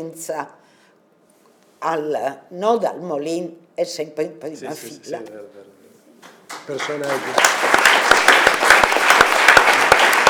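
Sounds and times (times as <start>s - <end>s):
speech: 0.0s - 0.7s, 1.8s - 5.8s, 6.7s - 7.8s
audience applause: 6.6s - 10.2s.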